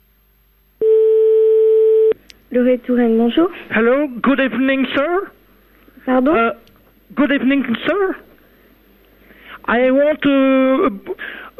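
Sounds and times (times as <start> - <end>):
telephone ringing tone on the line: 0.8 - 2.2
speech: 2.5 - 5.4, 6.0 - 8.3, 9.7 - 11.5.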